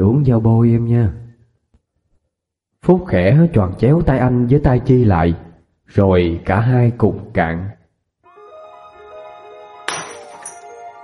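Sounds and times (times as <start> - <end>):
speech: 0.2 - 1.2, 2.8 - 7.8
soft sustained music: 8.2 - 11.0
glass cup clinking on a cold floor: 9.9 - 10.8
glass cups falling and shattering on a cold floor: 9.9 - 10.8.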